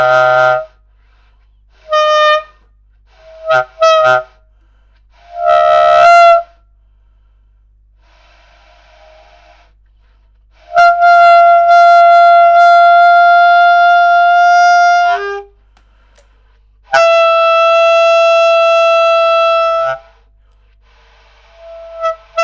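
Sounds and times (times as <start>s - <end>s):
bass clarinet: 0.0s - 0.9s, 1.7s - 4.5s, 5.1s - 6.7s, 10.6s - 15.6s, 16.9s - 20.3s, 21.2s - 22.4s.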